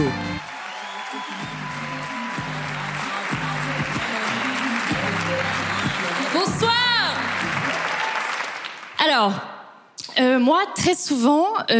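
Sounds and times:
audience applause: 0.0 - 9.0
speech: 9.2 - 9.5, 10.2 - 11.7.

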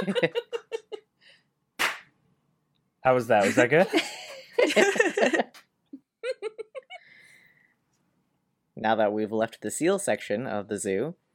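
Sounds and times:
speech: 0.0 - 0.5, 3.0 - 5.5, 8.8 - 11.2
laughter: 0.0 - 1.0, 3.4 - 5.6
group of people clapping hands: 1.8 - 2.1.

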